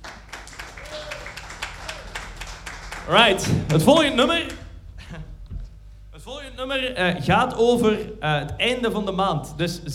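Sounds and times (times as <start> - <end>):
audience clapping at a live music session: 0.0 - 4.7
speech: 3.1 - 4.6, 6.6 - 9.9.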